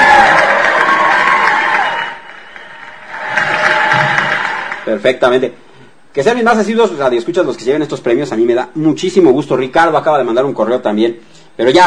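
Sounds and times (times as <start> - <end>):
audience clapping and cheering: 0.0 - 5.0
speech: 4.9 - 11.8.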